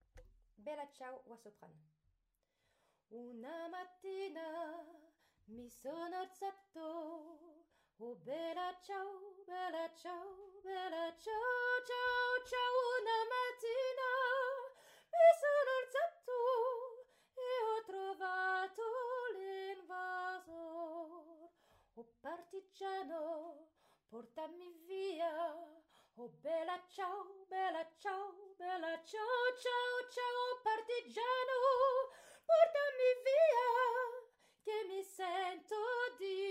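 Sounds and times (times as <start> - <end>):
soprano singing: 3.2 - 21.5, 22.2 - 36.4.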